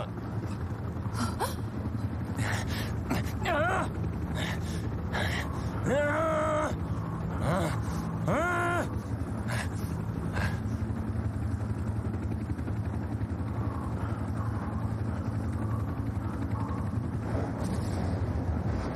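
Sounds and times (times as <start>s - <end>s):
stormy roaring wind: 0.0s - 18.9s.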